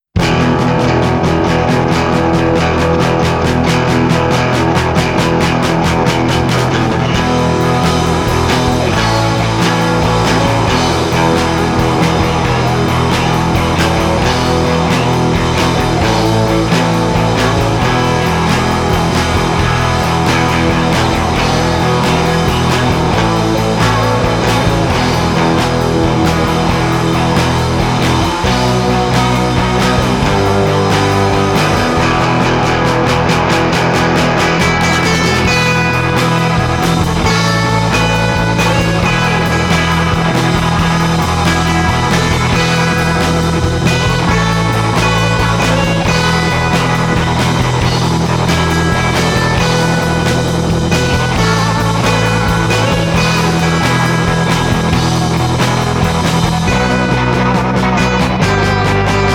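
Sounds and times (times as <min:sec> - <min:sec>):
thundering guitars: 0:00.0 - 0:59.3.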